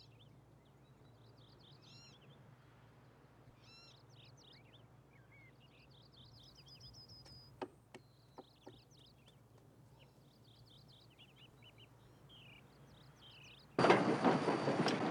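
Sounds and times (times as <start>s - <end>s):
freight train passing on rails: 13.8s - 15.1s.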